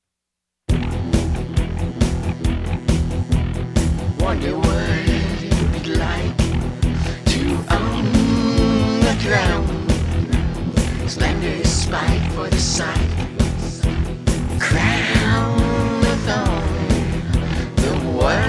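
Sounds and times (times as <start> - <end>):
alternative rock music: 0.7 - 18.4.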